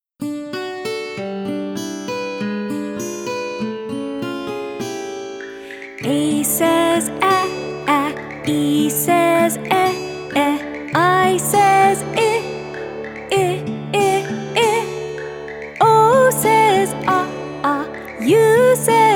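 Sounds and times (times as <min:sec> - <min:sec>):
vowel singing: 0:06.0 - 0:19.1.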